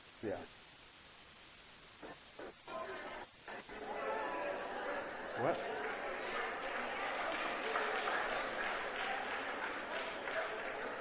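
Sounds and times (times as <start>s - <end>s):
speech: 0.2s - 0.6s, 5.4s - 5.7s
group of people clapping: 3.5s - 10.9s.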